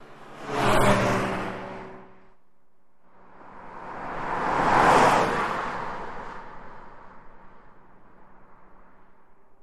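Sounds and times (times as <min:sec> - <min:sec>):
car passing fast: 0:00.0 - 0:02.4, 0:03.1 - 0:09.1.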